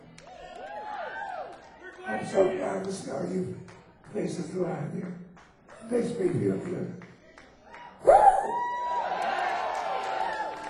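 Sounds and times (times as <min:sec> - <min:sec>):
audience applause and cheering for band: 0:00.0 - 0:03.0, 0:07.4 - 0:10.6
speech: 0:02.1 - 0:05.2, 0:05.9 - 0:07.0.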